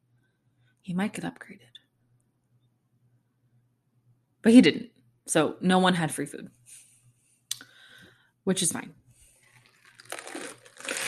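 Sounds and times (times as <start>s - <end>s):
speech: 0.8s - 1.8s, 4.4s - 6.8s, 8.5s - 9.0s
sipping a drink: 9.6s - 11.0s.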